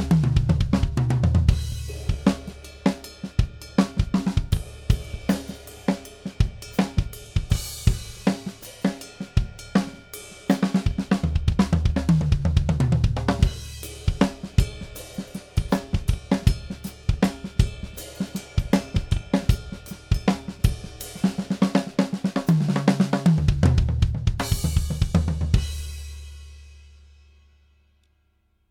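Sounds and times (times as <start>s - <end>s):
drums: 0.0s - 27.7s.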